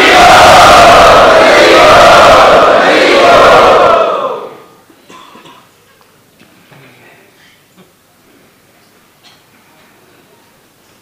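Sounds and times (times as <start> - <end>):
crowd at the Radha Gopinath temple cheering a welcome: 0.0 - 4.7.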